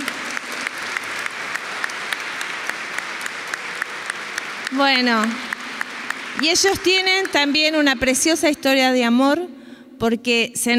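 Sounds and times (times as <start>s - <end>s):
audience applause: 0.0s - 8.2s
speech: 4.7s - 5.5s, 6.4s - 10.7s.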